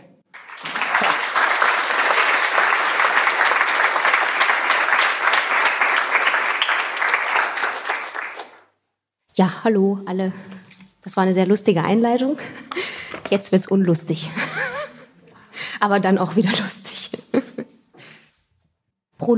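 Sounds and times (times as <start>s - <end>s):
audience applause: 0.3s - 8.7s
speech: 9.4s - 14.5s, 15.8s - 16.8s.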